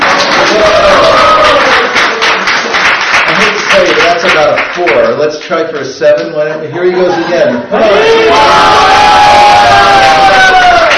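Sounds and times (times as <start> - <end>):
crowd cheering: 0.0 - 3.8, 7.7 - 10.9
speech: 4.8 - 9.0.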